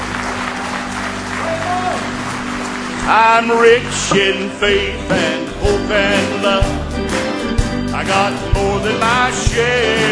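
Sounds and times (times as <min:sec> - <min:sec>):
audience hand clapping applause: 0:00.0 - 0:03.7
speech: 0:03.1 - 0:06.8, 0:08.0 - 0:10.1.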